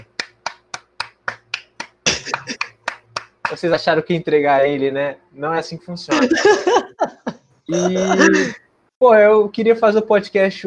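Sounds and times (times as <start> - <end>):
clapping: 0.0 - 3.7
speech: 3.5 - 7.1, 7.7 - 10.6
laughter: 6.1 - 8.6.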